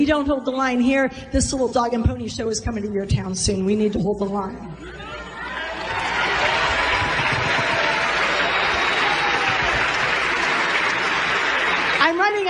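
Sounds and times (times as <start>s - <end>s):
speech: 0.0s - 5.0s
crowd applause: 5.0s - 12.4s.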